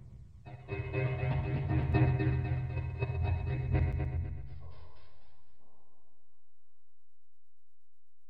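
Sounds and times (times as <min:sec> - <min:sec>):
B melodic minor music: 0:00.5 - 0:04.1.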